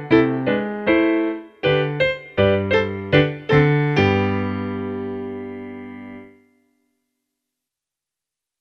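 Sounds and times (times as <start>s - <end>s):
piano accompaniment: 0.0s - 6.6s.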